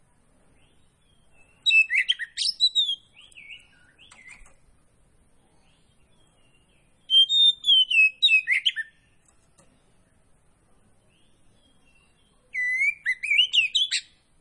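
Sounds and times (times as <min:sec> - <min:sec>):
magpie-robin singing: 0:00.5 - 0:04.6, 0:05.5 - 0:09.4, 0:11.0 - 0:14.3.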